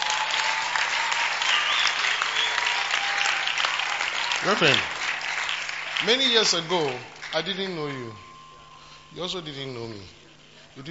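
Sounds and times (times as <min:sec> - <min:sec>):
audience clapping: 0:00.0 - 0:08.4
speech: 0:04.4 - 0:05.0, 0:06.0 - 0:08.2, 0:09.1 - 0:10.2.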